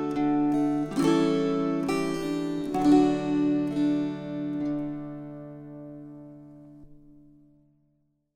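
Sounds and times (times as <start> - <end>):
string choir: 0.0 - 5.6.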